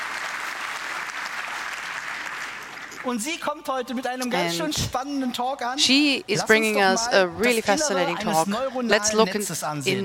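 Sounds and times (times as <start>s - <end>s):
audience applause for a speaker at a tech conference: 0.0s - 3.3s
speech: 3.0s - 10.0s.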